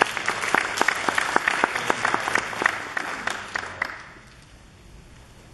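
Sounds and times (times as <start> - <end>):
audience applause: 0.0 - 4.2.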